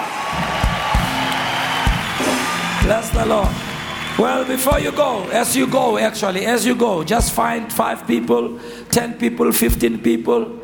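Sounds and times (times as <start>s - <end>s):
audience shouting and cheering: 0.0s - 7.6s
speech: 2.9s - 10.6s.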